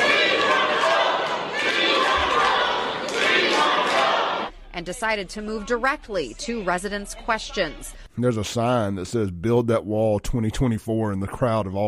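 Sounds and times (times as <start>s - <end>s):
angry crowd outbursts at meeting: 0.0s - 4.5s
speech: 4.8s - 11.8s.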